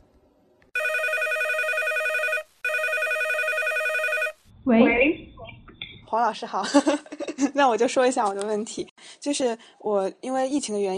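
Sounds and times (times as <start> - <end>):
telephone ringing: 0.8 - 4.4
speech: 4.7 - 5.2, 6.1 - 10.9.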